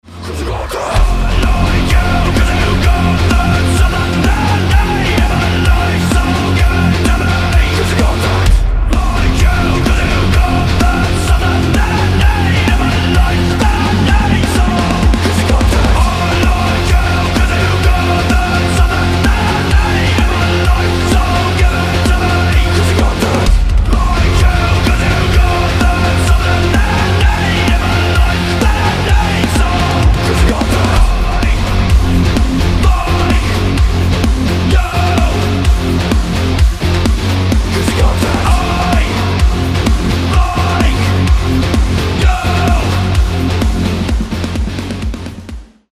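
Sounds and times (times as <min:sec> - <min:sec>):
epic metal cover: 0:00.0 - 0:45.9.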